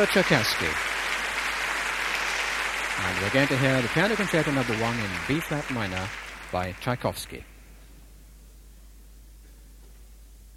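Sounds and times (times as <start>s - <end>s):
speech: 0.0s - 0.9s, 3.0s - 7.5s
applause from a large concert audience: 0.0s - 7.4s.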